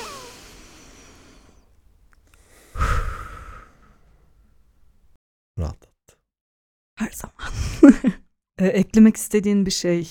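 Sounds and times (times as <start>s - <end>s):
deep breath taken together: 0.0s - 1.7s, 2.3s - 4.5s
speech: 7.0s - 10.1s.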